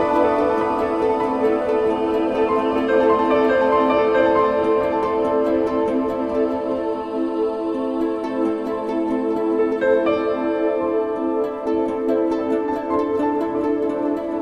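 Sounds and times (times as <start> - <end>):
music: 0.0 - 14.3.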